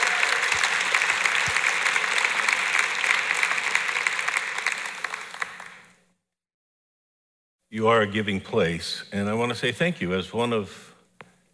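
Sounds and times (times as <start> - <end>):
audience applause welcoming a speaker: 0.0 - 6.0
speech: 7.8 - 10.9.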